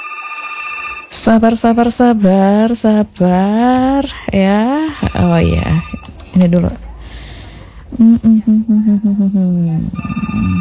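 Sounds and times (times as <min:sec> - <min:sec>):
telephone ringing as a radio station takes a listener's call: 0:00.0 - 0:01.8, 0:04.9 - 0:06.1, 0:10.0 - 0:10.5
speech: 0:01.2 - 0:06.8, 0:07.9 - 0:10.5.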